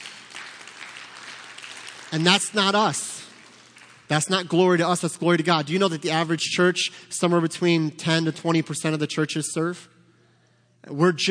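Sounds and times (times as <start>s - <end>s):
audience applause: 0.0s - 4.1s
speech: 2.1s - 3.2s, 4.1s - 9.9s, 10.8s - 11.2s.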